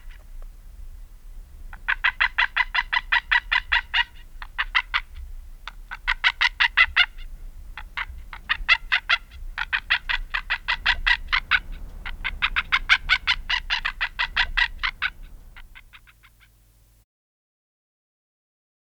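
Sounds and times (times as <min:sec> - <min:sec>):
White-tailed Eagle calling: 0:01.6 - 0:16.6.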